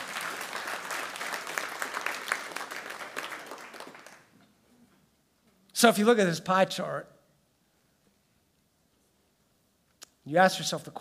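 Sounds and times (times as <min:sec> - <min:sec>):
audience clapping: 0:00.0 - 0:04.4
speech: 0:05.8 - 0:07.2, 0:10.3 - 0:10.9.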